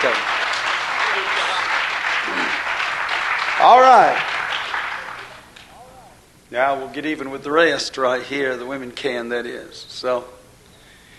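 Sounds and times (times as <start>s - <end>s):
audience applauding at a sermon: 0.0s - 5.7s
speech: 3.6s - 4.3s, 6.5s - 10.4s.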